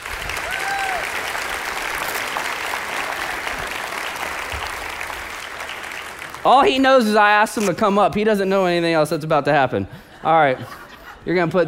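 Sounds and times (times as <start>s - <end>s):
audience applause: 0.0s - 6.8s
speech: 6.4s - 11.6s
laughter: 9.9s - 11.6s.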